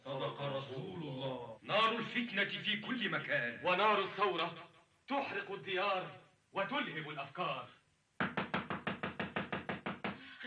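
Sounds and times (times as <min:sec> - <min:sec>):
speech: 0:00.4 - 0:07.8
knocking on a door at night: 0:08.2 - 0:10.2.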